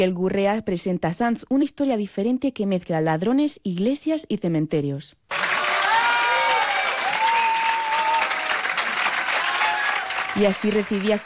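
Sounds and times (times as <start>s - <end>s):
speech: 0.0s - 5.5s, 10.4s - 11.2s
warm farewell ovation applause from a large crowd: 5.3s - 11.2s
faint whistles and cheering: 5.4s - 10.4s.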